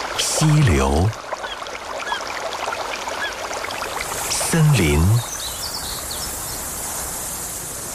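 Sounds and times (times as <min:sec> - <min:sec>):
speech: 0:00.4 - 0:01.2, 0:04.5 - 0:05.3
grassland insects: 0:03.7 - 0:07.9.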